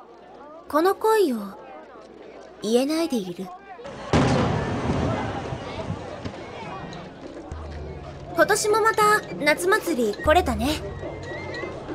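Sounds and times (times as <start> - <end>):
speech: 0.7 - 1.6, 2.6 - 4.0, 8.4 - 11.1
fireworks bursting in the night sky at a summer festival: 3.9 - 6.6.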